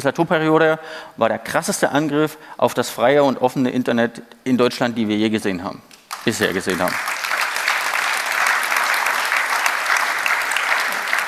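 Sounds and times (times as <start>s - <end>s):
speech: 0.0s - 7.2s
steady audience applause: 6.1s - 11.2s.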